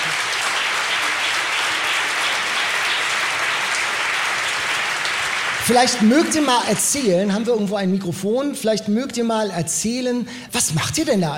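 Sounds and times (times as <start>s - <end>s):
crowd applause: 0.0s - 7.7s
speech: 5.7s - 11.3s.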